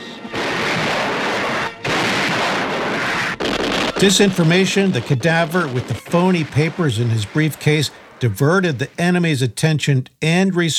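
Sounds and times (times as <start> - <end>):
naval guns firing broadsides: 0.3 - 8.8
speech: 4.0 - 10.7.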